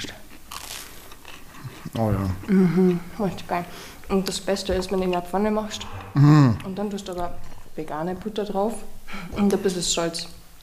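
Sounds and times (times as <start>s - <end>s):
people biting and chewing crunchy toast: 0.0s - 7.8s
speech: 2.0s - 10.4s.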